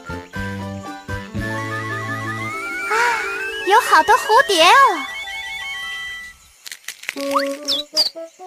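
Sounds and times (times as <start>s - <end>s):
baby birds chirping: 0.9s - 6.4s
speech: 3.9s - 5.1s, 7.2s - 8.4s.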